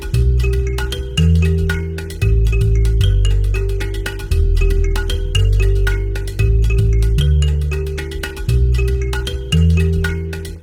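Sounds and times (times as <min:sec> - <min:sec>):
acoustic music: 0:00.0 - 0:10.6.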